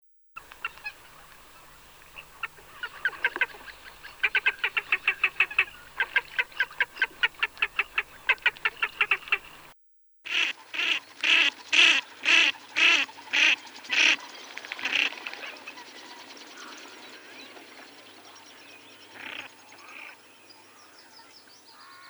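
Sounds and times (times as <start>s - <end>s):
ferruginous duck Aythya nyroca calling harsh nasal notes: 0.4s - 9.7s, 10.3s - 13.5s.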